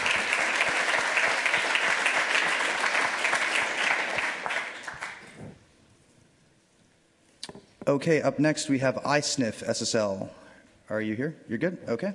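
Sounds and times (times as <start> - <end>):
audience applause: 0.0 - 5.6
speech: 7.9 - 12.1.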